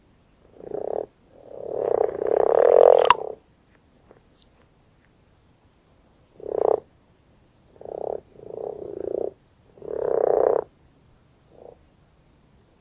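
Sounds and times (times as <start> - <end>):
common frog: 0.4 - 4.1, 6.3 - 6.9, 7.7 - 10.8, 11.5 - 11.8.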